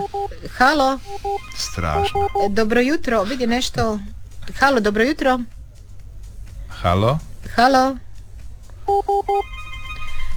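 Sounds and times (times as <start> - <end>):
electronic telephone ringtone signalling an incoming call: 0.0 - 0.4, 1.0 - 2.6, 8.9 - 10.3
faint steady tone: 0.0 - 3.4, 8.8 - 10.3
low hum: 0.0 - 10.3
speech: 0.5 - 5.6, 6.8 - 8.0, 9.0 - 9.5.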